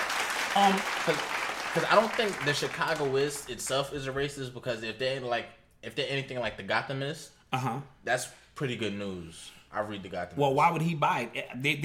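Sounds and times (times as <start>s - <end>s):
applause sound effect: 0.0s - 3.5s
speech: 0.6s - 11.8s.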